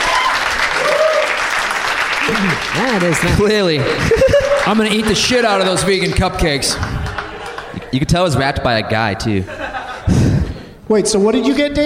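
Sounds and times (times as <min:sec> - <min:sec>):
crowd applause: 0:00.0 - 0:08.4
laughter: 0:02.2 - 0:10.8
speech: 0:02.3 - 0:07.0, 0:07.9 - 0:09.6, 0:10.9 - 0:11.8.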